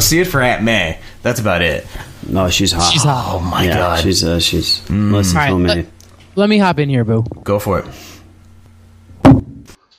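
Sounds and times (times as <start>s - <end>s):
speech: 0.1s - 8.2s
microphone dropping with a thud: 9.2s - 9.8s.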